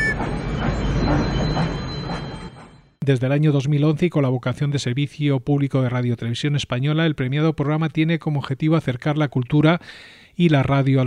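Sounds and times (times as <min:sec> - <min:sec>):
wheels clattering on rails: 0:00.0 - 0:03.0
train rolling along: 0:00.0 - 0:03.3
speech: 0:03.1 - 0:11.0.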